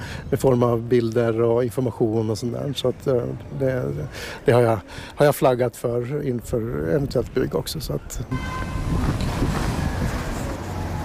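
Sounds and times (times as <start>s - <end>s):
busy city street traffic: 0.0s - 11.0s
speech: 0.3s - 8.9s.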